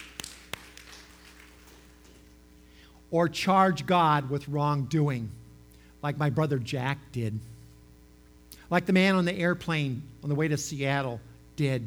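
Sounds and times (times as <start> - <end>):
soft claps from audience: 0.0 - 2.4
low steady hum: 0.0 - 11.8
speech: 3.1 - 5.4, 6.0 - 7.5, 8.7 - 11.8.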